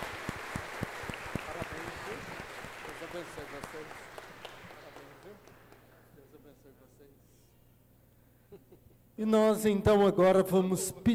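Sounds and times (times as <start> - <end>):
audience applause: 0.0 - 5.9
speech: 3.2 - 4.2, 9.2 - 11.1.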